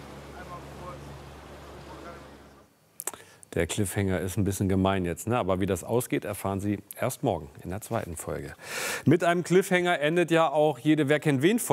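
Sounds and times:
rushing water: 0:00.0 - 0:02.5
motorboat engine droning: 0:00.0 - 0:02.7
speech: 0:03.6 - 0:11.7.

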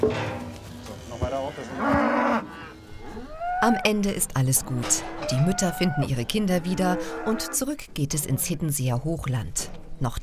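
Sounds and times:
cows mooing: 0:00.1 - 0:08.6
herd murmur: 0:00.8 - 0:08.5
speech: 0:03.6 - 0:10.2.

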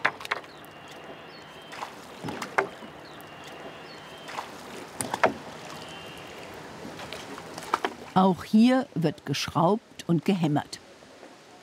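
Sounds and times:
oar strokes rowing a flat-bottomed wooden boat: 0:00.0 - 0:09.5
soft watery background: 0:00.0 - 0:11.6
wooden knocks and clicks of the boat: 0:02.2 - 0:02.8, 0:05.0 - 0:05.4
speech: 0:08.2 - 0:10.8.

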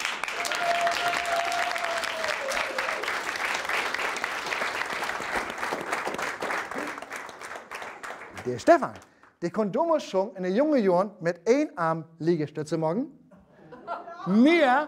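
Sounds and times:
audience applause: 0:00.0 - 0:09.0
scattered cheers: 0:00.2 - 0:03.2
speech: 0:08.4 - 0:13.2, 0:14.2 - 0:14.8
laughter: 0:13.3 - 0:14.8.

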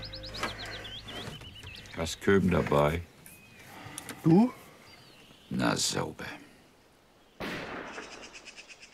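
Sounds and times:
speech: 0:02.0 - 0:03.1, 0:04.2 - 0:04.6, 0:05.5 - 0:06.4
gunfire at Klingsel: 0:07.4 - 0:08.5.

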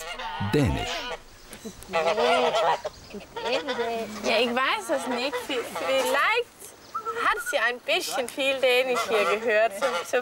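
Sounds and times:
geese honking: 0:00.0 - 0:01.3, 0:01.9 - 0:06.4, 0:08.7 - 0:10.2
speech: 0:00.4 - 0:06.5, 0:07.2 - 0:10.2.

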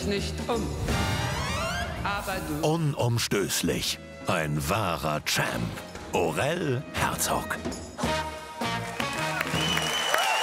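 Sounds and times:
speech: 0:00.0 - 0:01.3, 0:02.0 - 0:07.8
audience applause: 0:08.7 - 0:10.4
tonal whoops: 0:09.4 - 0:10.4.

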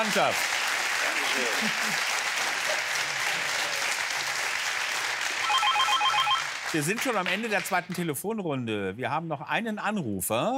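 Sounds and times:
speech: 0:00.0 - 0:00.6, 0:01.4 - 0:02.2, 0:06.7 - 0:10.5
applause: 0:00.0 - 0:08.1.

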